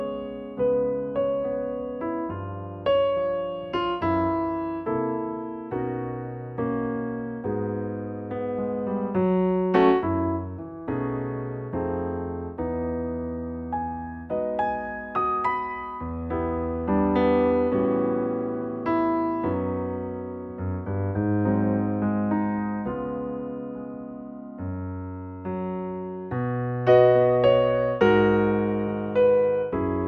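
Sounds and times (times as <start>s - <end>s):
piano notes from B to C: 0.0s - 30.0s.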